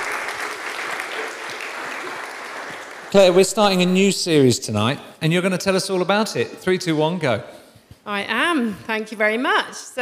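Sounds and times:
audience applause: 0.0s - 3.9s
speech: 3.1s - 10.0s.

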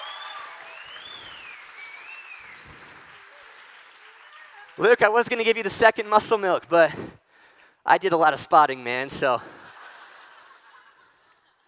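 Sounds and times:
faint high whistle-like tone gliding: 0.0s - 2.8s
audience clapping: 0.0s - 6.4s
speech: 4.8s - 7.2s, 7.9s - 9.6s
laughter: 9.3s - 11.6s.

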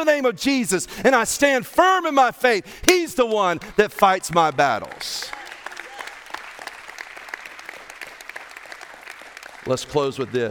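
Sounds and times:
speech: 0.0s - 5.4s, 9.7s - 10.4s
crowd applause: 4.6s - 10.4s.

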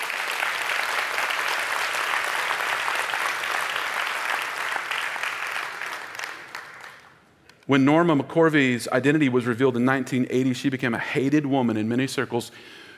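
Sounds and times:
audience clapping: 0.0s - 7.4s
speech: 7.7s - 12.9s.

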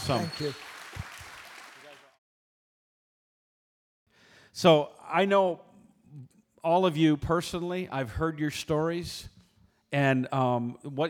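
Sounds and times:
speech: 0.0s - 1.1s, 4.6s - 9.3s, 9.9s - 11.0s
audience applause: 0.0s - 2.2s.

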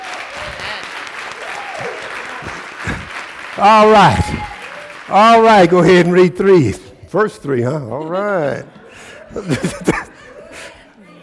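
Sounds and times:
audience hand clapping: 0.0s - 6.8s
laughter: 2.2s - 4.5s, 7.6s - 11.2s
speech: 3.6s - 4.5s, 5.1s - 10.0s.

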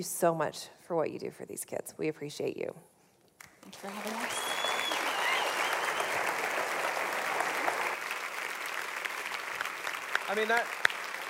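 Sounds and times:
speech: 0.0s - 3.0s, 3.7s - 4.4s, 10.3s - 10.9s
applause: 3.5s - 11.2s.

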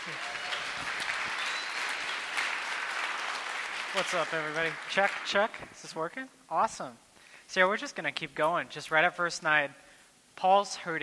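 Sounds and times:
audience applause: 0.0s - 5.6s
speech: 3.9s - 9.8s, 10.4s - 11.0s.

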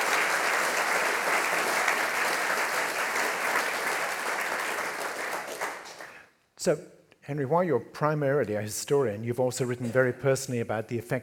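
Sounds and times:
audience clapping to welcome historian Henry Reynolds: 0.0s - 6.3s
speech: 6.6s - 11.2s.

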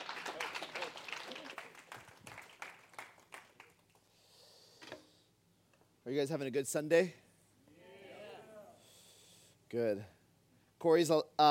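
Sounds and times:
audience clapping: 0.0s - 4.1s
speech: 6.1s - 7.2s, 9.7s - 10.2s, 10.8s - 11.4s.

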